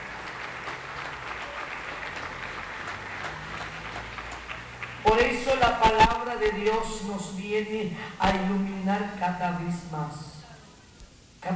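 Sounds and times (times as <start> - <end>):
applause: 0.0 - 6.8
speech: 5.8 - 10.3.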